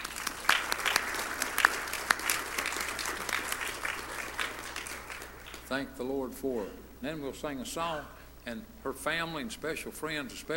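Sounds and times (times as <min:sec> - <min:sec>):
audience applause: 0:00.0 - 0:05.7
speech: 0:05.7 - 0:10.5.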